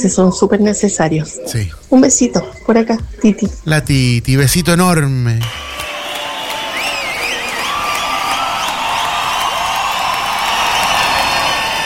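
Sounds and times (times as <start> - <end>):
speech: 0.0 - 5.7
friends cheering: 4.5 - 11.8
friends applauding: 4.6 - 11.8.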